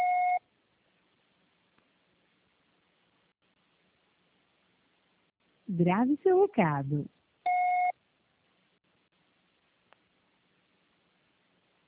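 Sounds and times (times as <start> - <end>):
Oi telephone answering machine beep: 0.0 - 0.4, 7.5 - 7.9
speech: 5.7 - 7.2.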